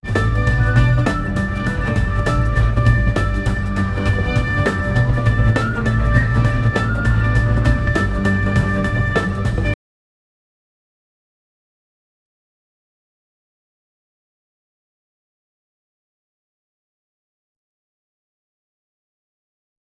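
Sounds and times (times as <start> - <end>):
Egyptian background music: 0.0 - 9.8.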